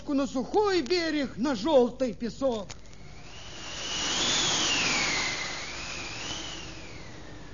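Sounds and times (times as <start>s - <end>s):
speech: 0.1s - 2.8s
strong wind blowing over rough sea: 3.0s - 7.5s
thin whistling tone: 3.0s - 7.5s.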